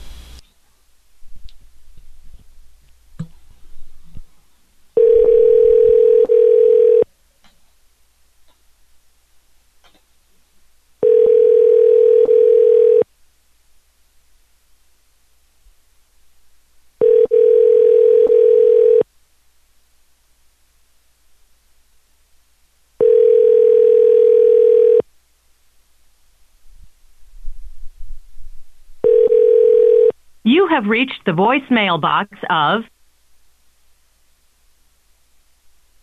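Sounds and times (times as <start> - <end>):
telephone ringing tone on a call placed after midnight: 5.0 - 7.1, 11.0 - 13.1, 17.0 - 19.0, 23.0 - 25.0, 29.0 - 30.2
speech: 30.7 - 32.9.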